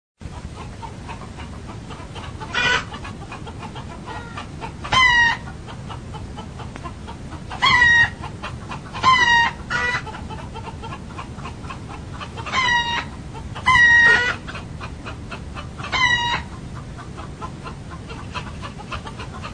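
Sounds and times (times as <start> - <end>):
roosters crowing: 1.9 - 5.7, 7.5 - 14.6, 15.3 - 16.6.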